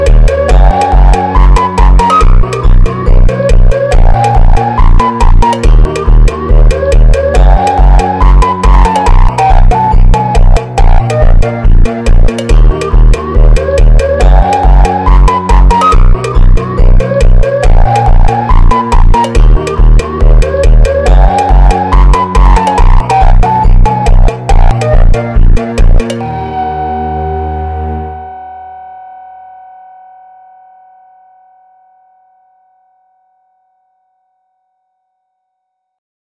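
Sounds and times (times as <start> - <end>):
funk music: 0.0 - 28.4.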